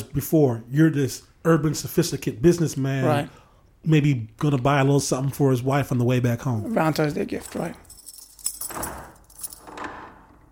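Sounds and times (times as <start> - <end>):
speech: 0.0 - 7.8
metallic jangle like keys from the door being locked: 7.3 - 9.8
heavy metal cell door shutting: 8.7 - 10.5.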